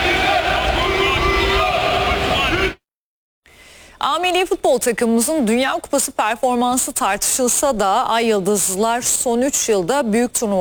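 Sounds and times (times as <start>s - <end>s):
about 50 football fans chanting for the Turkish national team in Los Angeles: 0.0s - 2.8s
speech: 4.0s - 10.5s.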